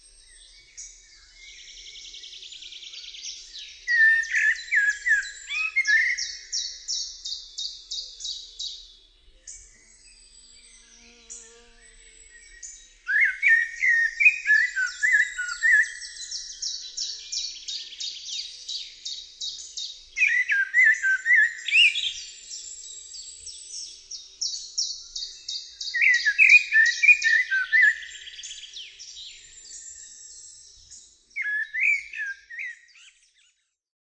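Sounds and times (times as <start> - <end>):
birdsounds: 0.0 - 33.8.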